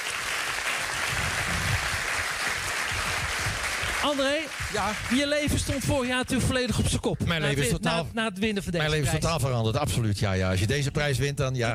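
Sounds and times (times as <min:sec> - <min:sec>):
audience applause: 0:00.0 - 0:06.2
speech: 0:04.0 - 0:11.7.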